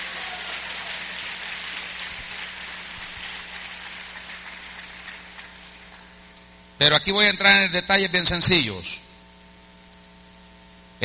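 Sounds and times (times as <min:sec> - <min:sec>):
audience applauding: 0:00.0 - 0:06.3
speech: 0:06.8 - 0:09.1.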